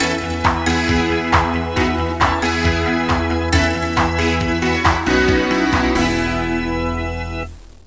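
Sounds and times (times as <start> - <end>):
rock music ringtone: 0.0 - 7.8.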